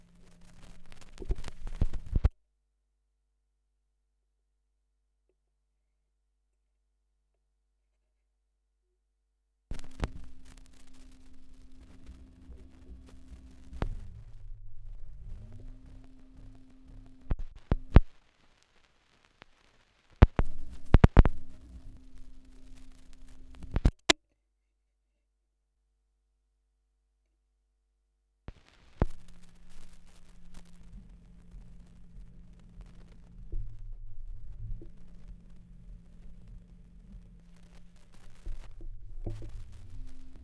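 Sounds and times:
78rpm record surface noise: 0:00.0 - 0:02.3, 0:09.7 - 0:24.2, 0:28.5 - 0:40.4.

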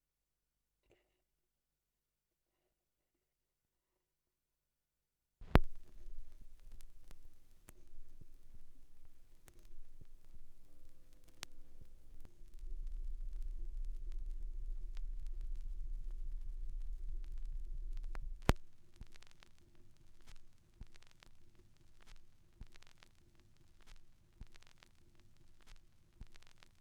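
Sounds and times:
vinyl record noise: 0:05.4 - 0:26.8.

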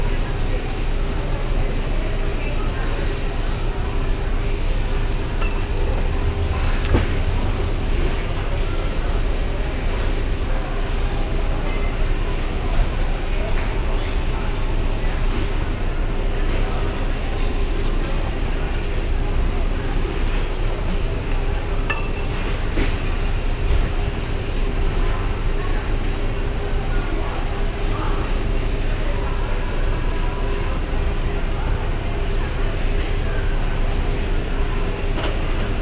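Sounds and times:
supermarket ambience in Brazil: 0:00.0 - 0:35.7.

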